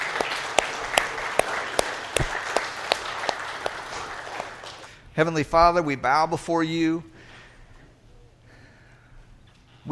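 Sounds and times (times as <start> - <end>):
audience clapping: 0.0 - 5.0
speech: 5.2 - 7.1.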